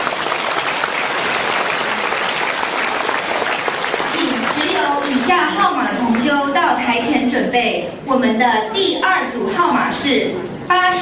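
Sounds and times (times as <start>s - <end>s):
audience applause: 0.0s - 5.4s
speech: 4.9s - 11.0s.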